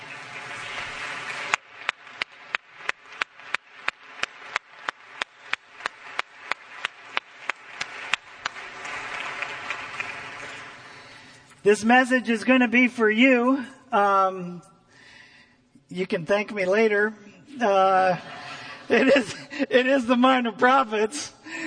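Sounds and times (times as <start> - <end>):
audience applauding: 0.0 - 11.5
speech: 11.7 - 14.7, 15.9 - 18.3, 18.9 - 21.4
laughter: 17.9 - 19.8.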